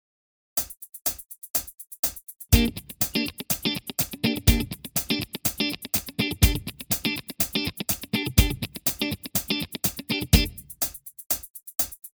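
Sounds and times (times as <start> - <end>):
cocottes muted guitar rhythm combo: 2.5 - 10.6.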